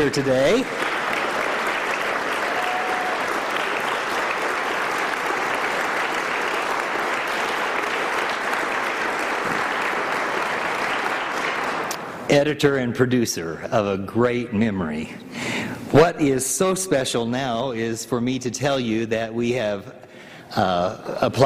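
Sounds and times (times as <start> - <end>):
speech: 0.0 - 0.8, 12.3 - 15.2, 15.9 - 21.4
audience applause: 0.0 - 12.0.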